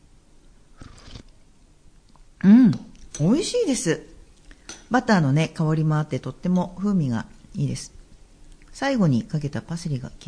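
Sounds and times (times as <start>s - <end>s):
person tasting clam soup spaghetti with butter and parsley: 0.8s - 1.4s
speech: 2.4s - 4.1s, 4.9s - 8.0s, 8.8s - 10.2s.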